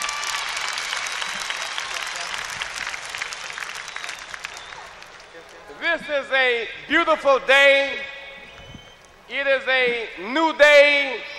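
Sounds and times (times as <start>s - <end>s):
audience applause: 0.0s - 5.8s
speech: 6.0s - 8.1s, 9.3s - 11.3s.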